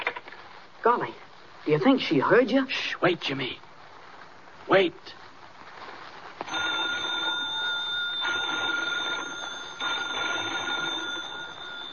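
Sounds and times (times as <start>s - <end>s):
speech: 0.8s - 3.6s, 4.7s - 5.2s
telephone bell ringing urgently in an old lighthouse: 6.5s - 11.9s.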